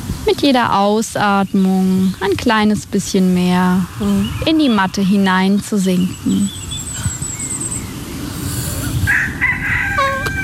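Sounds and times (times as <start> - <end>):
speech: 0.3 - 6.6
rooster crowing: 9.1 - 10.4.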